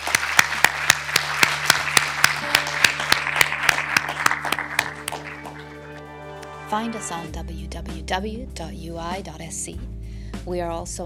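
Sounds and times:
audience round of applause: 0.0 - 7.2
speech: 6.7 - 11.0.

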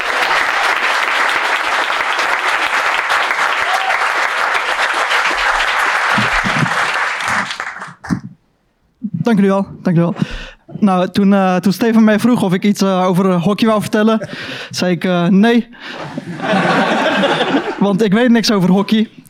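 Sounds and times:
loud audience applause: 0.0 - 8.2
speech: 9.3 - 16.7, 17.8 - 19.2
laughter: 15.8 - 18.0.

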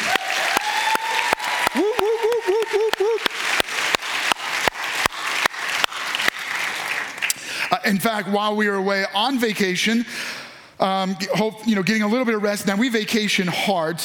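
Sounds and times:
wavering cheer or whoop: 0.0 - 3.4
audience applause: 0.0 - 7.7
speech: 7.9 - 14.0.

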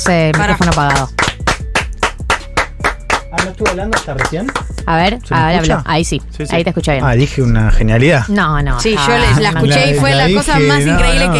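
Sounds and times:
speech: 0.0 - 1.3, 3.4 - 11.3
hand claps: 0.0 - 4.9.

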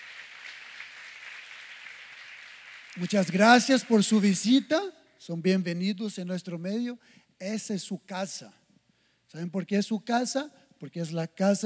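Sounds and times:
audience applause: 0.0 - 4.6
speech: 3.0 - 8.6, 9.3 - 11.6.

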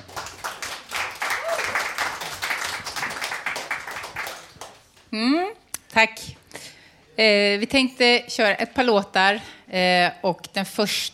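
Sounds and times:
audience applause: 0.0 - 4.8
speech: 5.1 - 6.4, 7.2 - 11.1.

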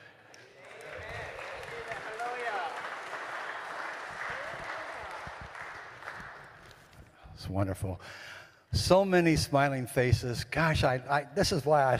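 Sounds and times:
church congregation applauding: 0.3 - 7.0
speech: 7.4 - 11.9.

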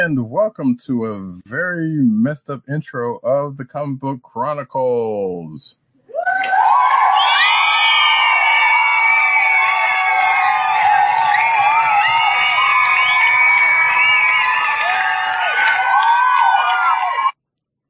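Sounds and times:
speech: 0.1 - 6.6
large crowd cheering and whooping: 6.1 - 17.3.

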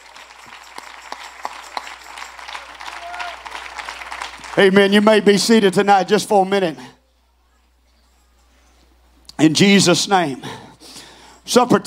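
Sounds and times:
audience clapping: 0.0 - 5.6
speech: 4.6 - 6.9, 9.4 - 10.6, 11.5 - 11.8.

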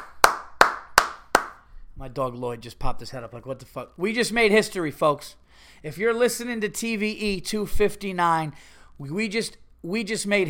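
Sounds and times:
hand clapping: 0.0 - 1.7
speech: 2.0 - 10.4.

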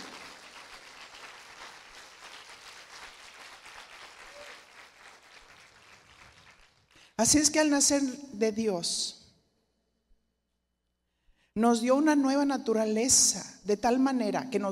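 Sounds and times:
audience applauding: 0.0 - 7.0
speech: 7.2 - 9.2, 11.6 - 14.7.

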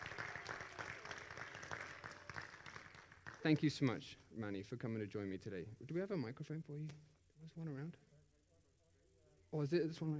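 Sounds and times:
audience applause: 0.0 - 4.0
speech: 3.4 - 8.1, 9.5 - 10.1.

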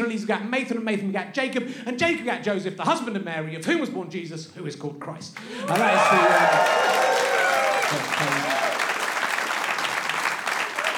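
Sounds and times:
speech: 0.1 - 7.0
crowd cheering: 5.5 - 10.9
crowd applause: 5.6 - 10.9.

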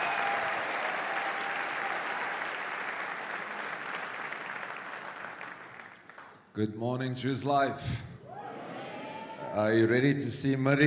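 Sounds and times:
church congregation applauding to welcome the senior pastor: 0.0 - 6.5
speech: 6.6 - 8.1, 9.6 - 10.8.

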